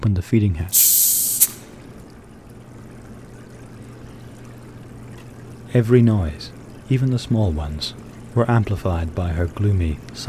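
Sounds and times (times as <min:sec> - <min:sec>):
speech: 0:00.0 - 0:01.6, 0:05.7 - 0:10.2
steady low hum: 0:00.1 - 0:10.2
pressurized air hissing from a tank: 0:00.7 - 0:01.7.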